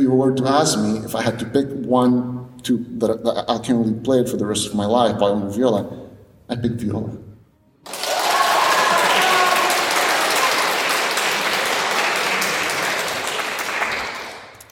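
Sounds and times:
speech: 0.0s - 8.0s
audience applauding: 7.8s - 14.7s.

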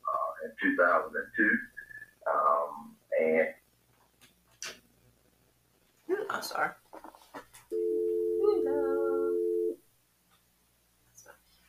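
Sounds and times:
speech: 0.6s - 2.6s, 3.2s - 3.6s, 6.3s - 7.1s
telephone dial tone: 7.7s - 9.8s.

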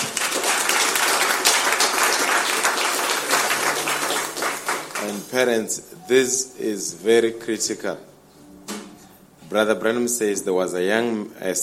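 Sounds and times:
audience applause: 0.0s - 5.4s
speech: 5.3s - 8.2s, 9.5s - 11.6s.

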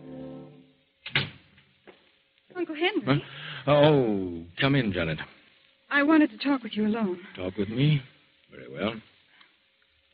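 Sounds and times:
door closing: 1.1s - 1.4s
speech: 2.6s - 5.3s, 5.9s - 9.1s.

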